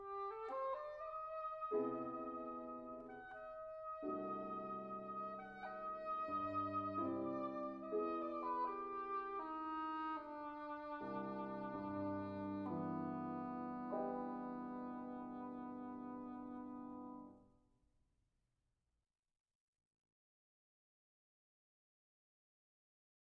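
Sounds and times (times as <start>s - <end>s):
quirky waltz: 0.0s - 17.2s.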